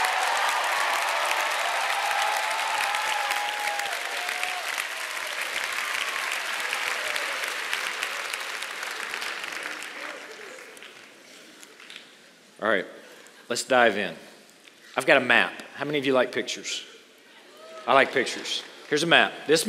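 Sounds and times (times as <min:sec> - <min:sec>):
large audience applauding in a university chapel welcoming visiting guests: 0:00.0 - 0:12.0
speech: 0:12.6 - 0:14.3, 0:15.0 - 0:16.9, 0:17.8 - 0:19.6.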